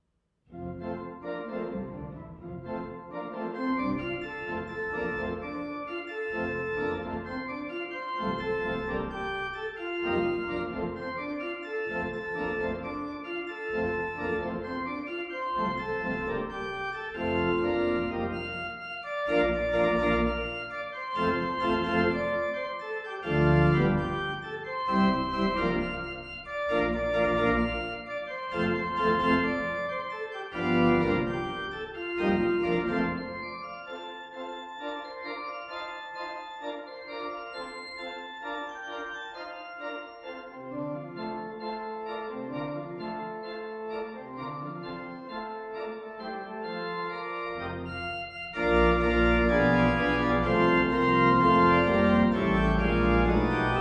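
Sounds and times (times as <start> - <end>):
organ playing a spiritual: 0.5 - 53.7.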